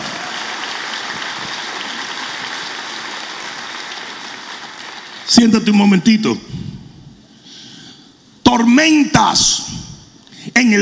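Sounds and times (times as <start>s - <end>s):
audience applauding: 0.0s - 5.4s
speech: 5.3s - 6.6s, 8.8s - 9.7s, 10.6s - 10.8s.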